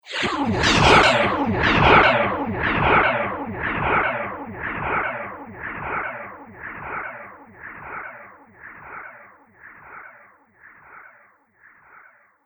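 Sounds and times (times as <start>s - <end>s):
space crash impact with delay: 0.1s - 6.6s.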